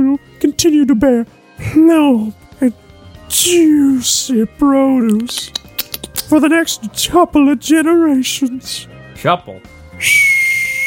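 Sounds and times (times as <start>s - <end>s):
speech: 0.9s - 5.7s, 6.3s - 10.3s
tea kettle whistling: 10.0s - 10.8s.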